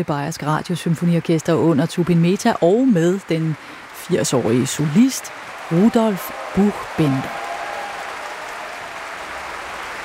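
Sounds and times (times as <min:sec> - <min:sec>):
speech: 0:00.0 - 0:07.4
cheering and applause for a pianist in Munich: 0:02.8 - 0:10.0.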